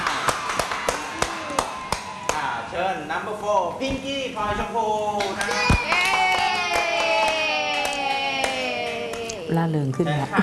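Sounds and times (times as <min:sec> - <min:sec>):
hands clapping for a contestant at a stage event in Thailand: 0:00.0 - 0:02.5, 0:05.2 - 0:09.4
speech: 0:03.0 - 0:06.2, 0:09.5 - 0:10.4.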